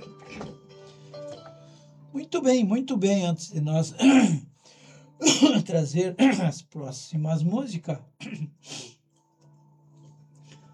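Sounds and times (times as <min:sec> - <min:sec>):
speech: 0:02.2 - 0:04.5, 0:05.2 - 0:08.8
elderly man clearing his throat: 0:04.0 - 0:04.5, 0:05.2 - 0:06.6, 0:08.2 - 0:08.6.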